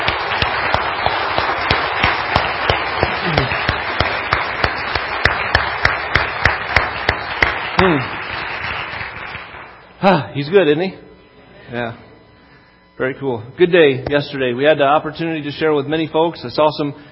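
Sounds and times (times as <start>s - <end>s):
audience applause: 0.0s - 9.8s
speech: 10.0s - 11.0s, 11.7s - 12.0s, 13.0s - 17.0s.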